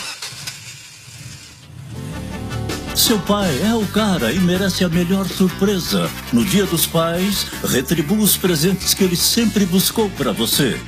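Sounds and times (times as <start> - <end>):
car engine starting: 0.0 - 5.1
rising tone: 1.6 - 6.2
speech: 3.0 - 10.8.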